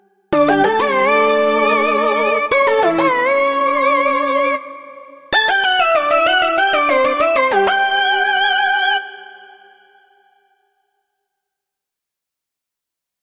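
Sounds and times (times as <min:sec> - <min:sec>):
synth melody: 0:00.4 - 0:08.3.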